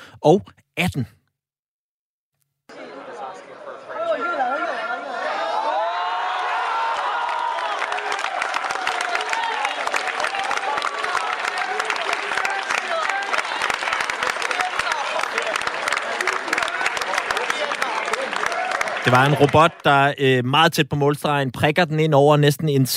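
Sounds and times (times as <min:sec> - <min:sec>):
speech: 0:00.2 - 0:01.2, 0:19.1 - 0:22.9
crowd applause at robot soccer match: 0:02.7 - 0:20.1.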